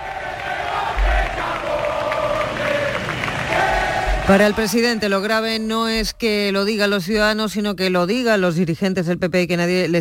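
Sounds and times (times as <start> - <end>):
crowd shouting and booing at the Plaza de Neptuno: 0.0 - 5.4
speech: 4.3 - 9.9.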